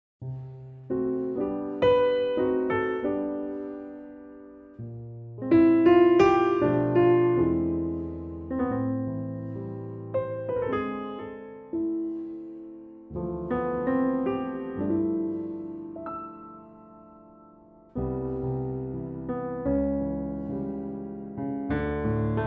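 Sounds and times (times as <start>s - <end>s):
piano note C: 0.2s - 22.4s.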